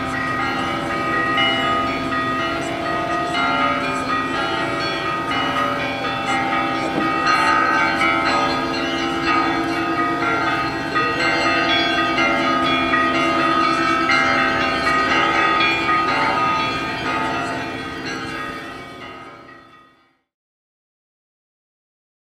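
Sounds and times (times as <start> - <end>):
street ambience in Sergiyev Posad: 0.0 - 20.2
bells ringing in Sergiyev Posad: 0.0 - 20.3.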